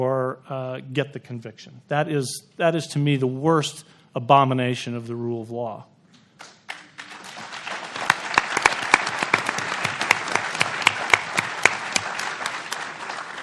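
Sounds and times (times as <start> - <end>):
speech: 0.0 - 6.5
audience applause: 6.4 - 13.4.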